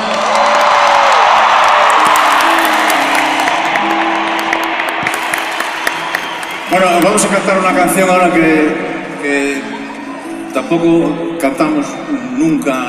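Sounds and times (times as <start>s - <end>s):
whoops and cheers: 0.0s - 7.3s
audience applause: 0.0s - 7.8s
speech: 6.8s - 9.7s, 10.6s - 12.8s.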